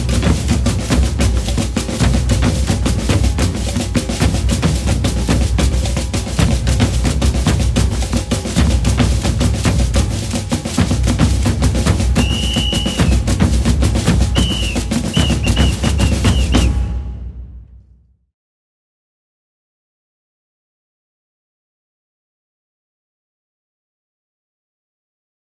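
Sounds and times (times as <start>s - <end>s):
maracatu percussion: 0.0s - 17.6s.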